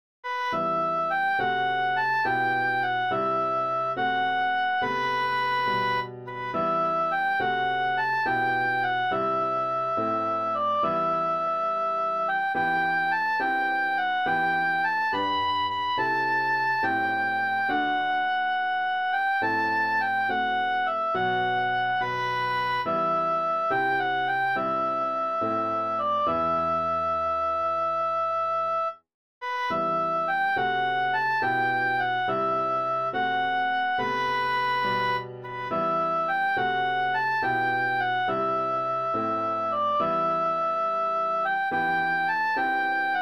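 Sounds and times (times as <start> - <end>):
oboe: 0.2 - 43.2
piano: 0.2 - 43.2.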